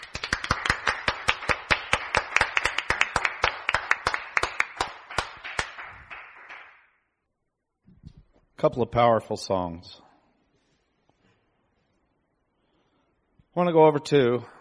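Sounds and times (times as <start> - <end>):
audience cheering and clapping: 0.0 - 6.8
speech: 8.6 - 10.0, 13.6 - 14.5.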